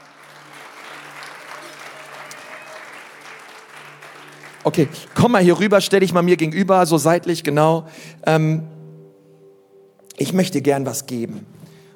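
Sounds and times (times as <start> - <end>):
applause: 0.0 - 6.1
speech: 4.6 - 8.7, 10.2 - 11.7.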